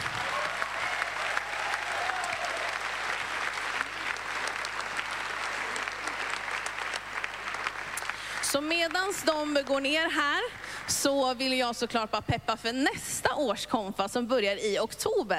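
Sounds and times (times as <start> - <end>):
people cheering: 0.0 - 8.3
audience applause: 0.0 - 10.9
speech: 8.6 - 15.3.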